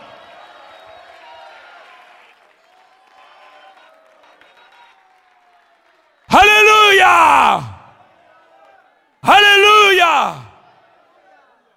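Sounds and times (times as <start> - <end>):
audience applause: 0.0 - 10.5
audience voices shouting in praise: 6.3 - 7.8, 9.2 - 10.5.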